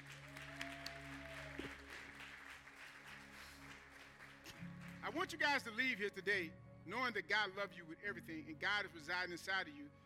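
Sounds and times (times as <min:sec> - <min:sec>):
audience applause: 0:00.0 - 0:05.4
speech: 0:05.1 - 0:10.0.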